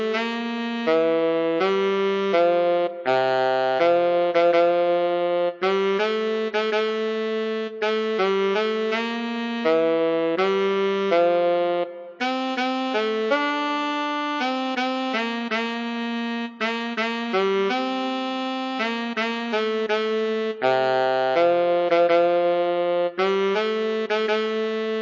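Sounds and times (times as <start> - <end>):
solo tenor saxophone: 0.0 - 25.0.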